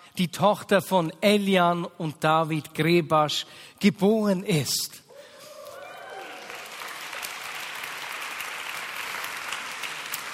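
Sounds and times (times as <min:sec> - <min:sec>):
speech: 0:00.2 - 0:05.0
applause: 0:05.7 - 0:10.3.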